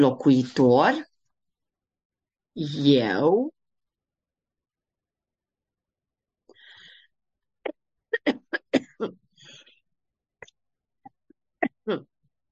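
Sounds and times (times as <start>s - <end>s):
speech: 0.0s - 1.1s, 2.6s - 3.6s, 11.9s - 12.1s
person coughing: 8.2s - 9.2s.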